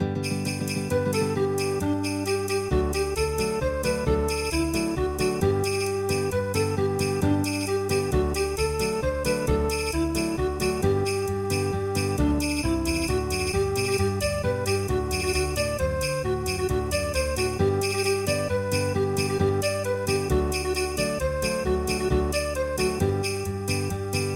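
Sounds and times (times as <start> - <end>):
flamenco music: 0.0 - 24.3.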